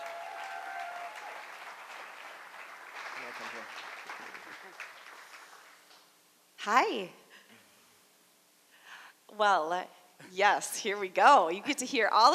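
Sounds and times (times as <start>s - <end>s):
audience cheering: 0.0s - 5.1s
large audience applauding speaker coming to stage: 0.0s - 6.0s
speech: 3.3s - 5.1s, 6.6s - 7.2s, 9.3s - 12.3s.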